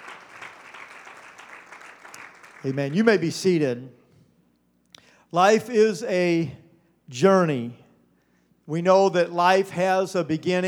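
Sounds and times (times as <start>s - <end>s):
audience clapping hands once: 0.0s - 2.8s
speech: 2.6s - 4.0s, 5.3s - 7.8s, 8.7s - 10.6s.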